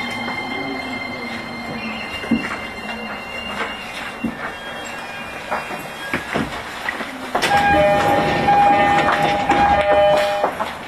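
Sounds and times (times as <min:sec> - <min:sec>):
E231 series train running between Ebisu and Shibuya: 0:00.0 - 0:10.8.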